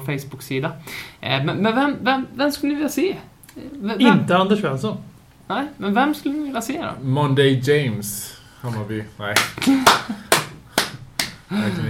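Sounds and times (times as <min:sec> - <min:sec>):
speech: 0:00.0 - 0:10.3, 0:11.5 - 0:11.8
person clapping hands: 0:09.4 - 0:11.5
laughter: 0:09.6 - 0:10.7.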